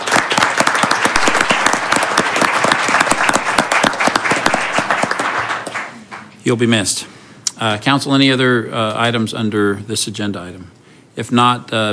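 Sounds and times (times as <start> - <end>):
audience applause: 0.0 - 6.3
speech: 6.5 - 11.9.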